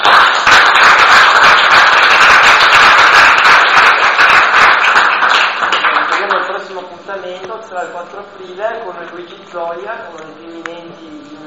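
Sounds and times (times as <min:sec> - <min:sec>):
audience applause: 0:00.0 - 0:06.5
speech: 0:07.7 - 0:11.4.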